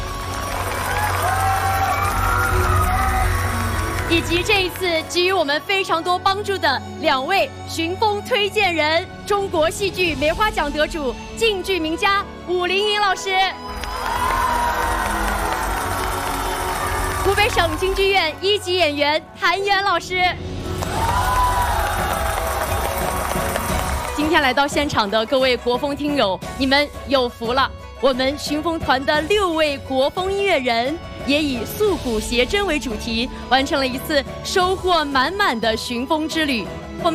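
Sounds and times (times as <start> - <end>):
audience applause: 0.0 - 4.8, 13.7 - 18.2, 20.7 - 24.7
speech: 4.1 - 13.6, 17.3 - 20.5, 24.2 - 37.1.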